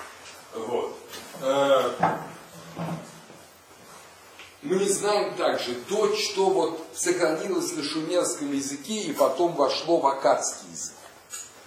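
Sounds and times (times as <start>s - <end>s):
chair being set down during a lecture: 1.9s - 3.3s
speech: 4.7s - 11.0s.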